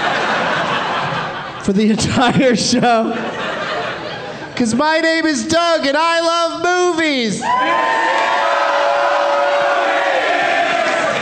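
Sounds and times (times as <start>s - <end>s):
laughter: 0.0s - 4.8s
speech: 1.6s - 3.6s, 4.6s - 8.3s
live audience at a show cheering: 7.4s - 11.2s.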